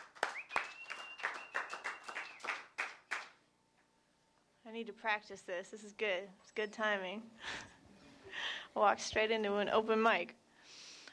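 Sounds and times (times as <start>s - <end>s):
open mic audience clapping: 0.0s - 3.4s
speech: 4.8s - 7.6s, 8.8s - 10.4s.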